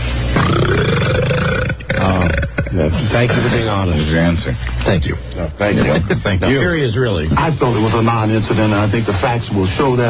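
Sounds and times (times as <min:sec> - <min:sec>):
deep belch: 0:00.3 - 0:03.7
speech: 0:03.2 - 0:10.0.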